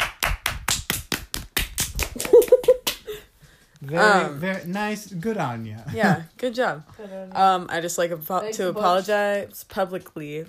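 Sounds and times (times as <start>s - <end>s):
round of applause clapping: 0.0s - 3.1s
speech: 3.8s - 10.4s.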